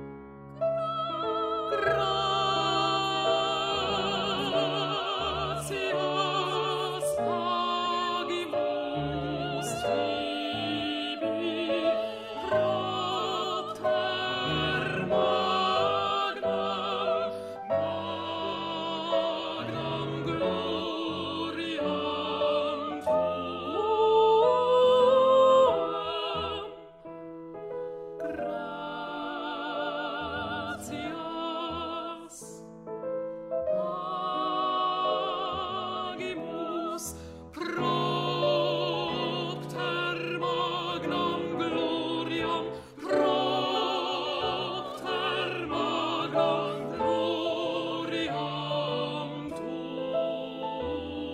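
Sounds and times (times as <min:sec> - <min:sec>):
alto voice singing: 0:00.6 - 0:27.0, 0:28.2 - 0:32.7, 0:33.8 - 0:51.3.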